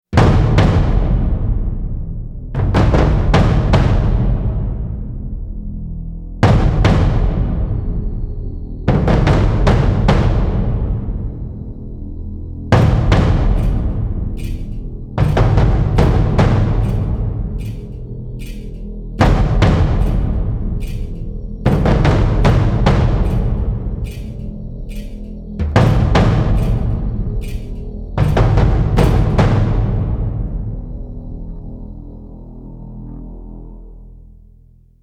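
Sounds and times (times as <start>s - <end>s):
war drums: 0.2s - 2.0s, 2.6s - 5.0s, 6.4s - 7.7s, 8.9s - 11.1s, 12.7s - 30.7s.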